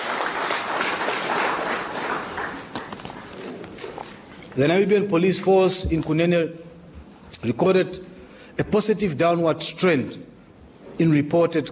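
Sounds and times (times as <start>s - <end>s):
crowd applauding a police commissioner of the Namibian Police Force: 0.0s - 3.5s
speech: 4.6s - 6.7s, 7.4s - 10.3s, 11.0s - 11.7s.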